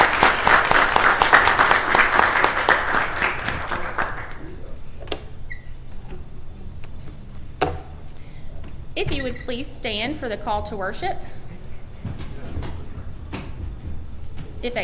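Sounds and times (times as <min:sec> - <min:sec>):
applause for graduates: 0:00.0 - 0:04.5
speech: 0:09.0 - 0:11.4, 0:14.6 - 0:14.8.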